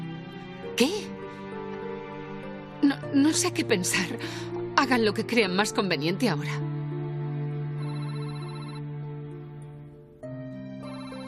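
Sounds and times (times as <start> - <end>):
speech: 0.8 - 1.1, 3.1 - 6.7
telephone electronic ringtone: 7.8 - 8.9, 10.8 - 11.2.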